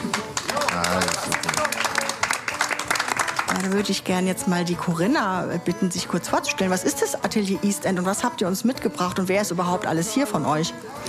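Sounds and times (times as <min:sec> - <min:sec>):
audience applauding: 0:00.0 - 0:04.0
speech: 0:03.6 - 0:11.0.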